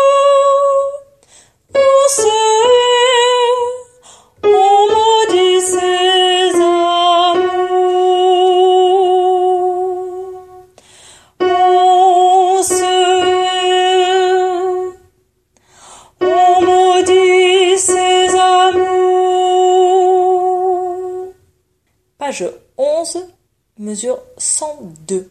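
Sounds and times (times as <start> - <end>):
soprano singing: 0.0 - 10.8, 11.4 - 15.1, 16.1 - 21.4.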